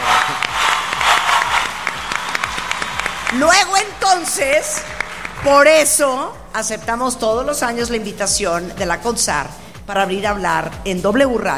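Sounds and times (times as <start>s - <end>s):
crowd clapping: 0.0s - 5.7s
speech: 3.3s - 11.5s.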